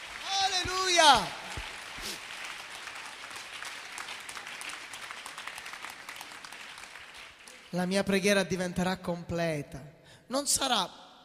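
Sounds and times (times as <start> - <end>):
crowd applause: 0.0 - 7.7
speech: 1.0 - 1.4, 7.7 - 11.0.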